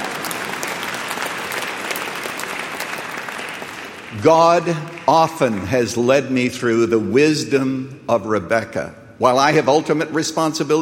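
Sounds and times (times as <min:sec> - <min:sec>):
audience clapping: 0:00.0 - 0:06.5
speech: 0:04.1 - 0:10.7.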